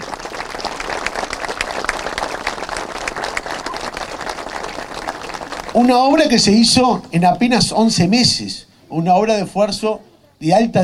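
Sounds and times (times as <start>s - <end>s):
audience applause: 0.0s - 7.0s
speech: 5.8s - 10.8s.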